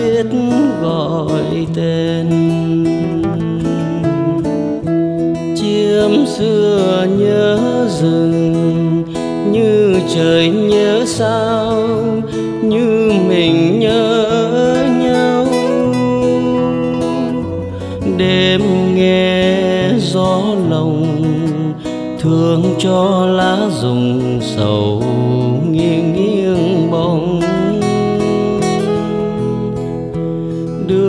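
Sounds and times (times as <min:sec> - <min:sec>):
acoustic guitar bolero: 0:00.0 - 0:31.0.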